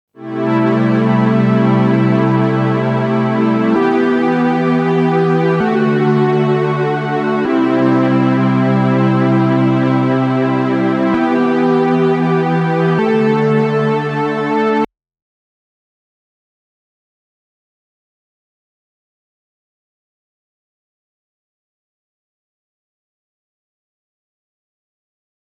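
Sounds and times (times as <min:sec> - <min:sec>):
brassy strings with delay: 0:00.2 - 0:14.8.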